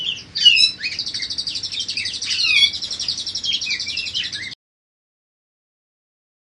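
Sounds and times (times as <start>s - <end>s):
budgerigar chattering warble: 0.0s - 4.5s.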